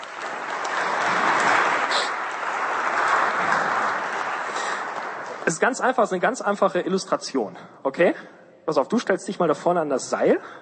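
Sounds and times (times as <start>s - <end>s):
audience applause: 0.0s - 6.3s
speech: 5.5s - 10.6s.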